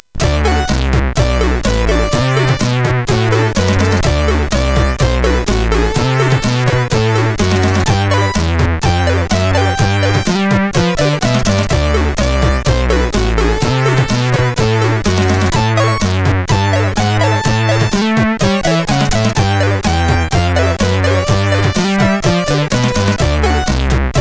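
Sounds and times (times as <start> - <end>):
blues on a CSG 8580 sound chip: 0.0 - 24.2.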